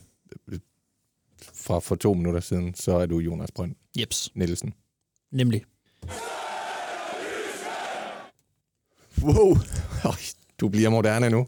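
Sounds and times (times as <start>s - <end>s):
speech: 0.3s - 0.7s, 1.4s - 6.2s, 9.2s - 11.4s
stadium crowd shouting sound effect: 6.1s - 8.3s.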